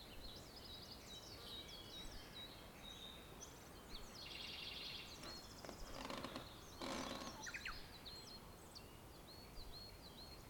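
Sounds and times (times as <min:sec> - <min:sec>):
soft steady hiss: 0:00.0 - 0:10.4
birdsong outside a wooden cabin: 0:04.1 - 0:08.4
rustling or scraping: 0:05.2 - 0:07.5.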